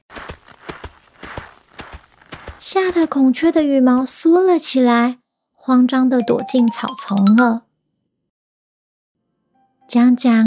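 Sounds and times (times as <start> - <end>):
clear footsteps: 0.0 - 3.6
speech: 2.7 - 7.7, 9.9 - 10.4.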